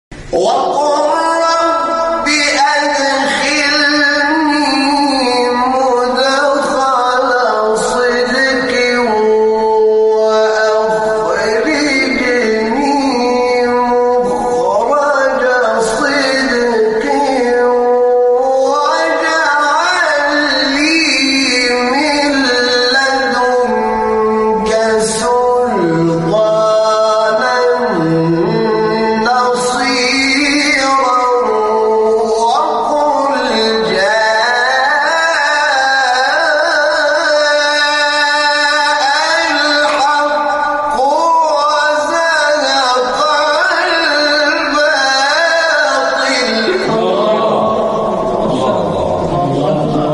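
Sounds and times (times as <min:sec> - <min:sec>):
recitation of a Quran verse: 0:00.1 - 0:50.1.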